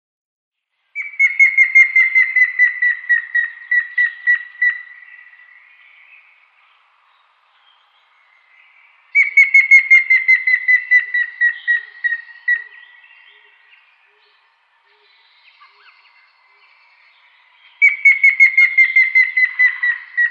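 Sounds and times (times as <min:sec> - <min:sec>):
grey-headed woodpecker whistled display notes: 0:01.0 - 0:05.3, 0:09.2 - 0:13.5, 0:17.7 - 0:20.2.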